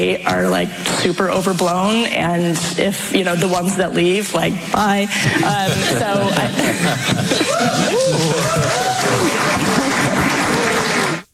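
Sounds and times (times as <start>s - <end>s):
speech: 0.0s - 10.4s
laughter: 5.1s - 11.3s
audience applause in played clip: 7.0s - 11.3s.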